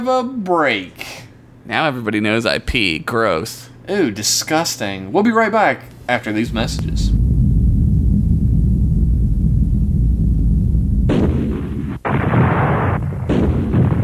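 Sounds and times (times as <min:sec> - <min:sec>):
speech: 0:00.0 - 0:07.1
meteorite storm sound effect: 0:06.4 - 0:14.0.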